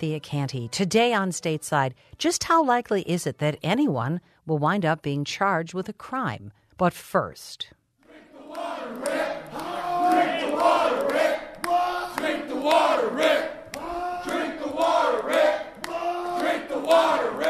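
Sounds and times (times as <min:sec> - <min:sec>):
speech: 0:00.0 - 0:07.8
protesters chanting outside the room of Michigan Governor Snyder's budget speech: 0:08.0 - 0:17.4.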